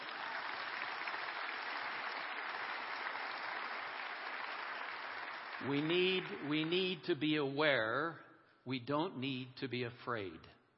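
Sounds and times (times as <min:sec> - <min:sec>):
crowd applause: 0:00.0 - 0:06.9
speech: 0:05.6 - 0:10.6.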